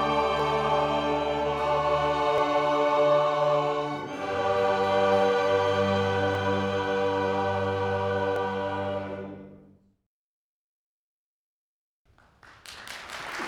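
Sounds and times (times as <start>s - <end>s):
chorale: 0.0s - 9.9s.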